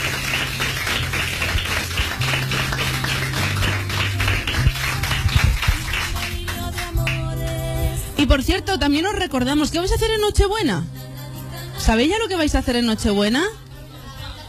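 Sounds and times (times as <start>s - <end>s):
applause: 0.0s - 7.6s
speech: 8.3s - 11.0s, 11.9s - 13.6s.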